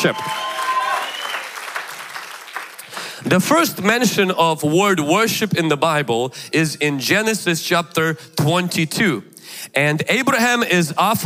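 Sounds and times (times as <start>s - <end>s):
speech: 0.0s - 0.4s, 3.2s - 11.2s
audience clapping: 0.0s - 3.3s.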